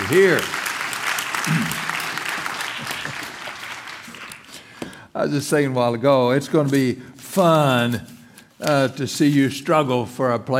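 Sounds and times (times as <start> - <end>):
church congregation applause at Briarcliff: 0.0 - 4.7
speech: 0.1 - 0.6, 1.5 - 1.8, 5.2 - 10.5.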